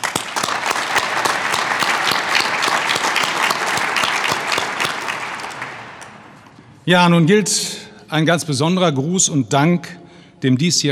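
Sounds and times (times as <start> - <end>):
audience applause: 0.0 - 6.6
speech: 6.9 - 10.9.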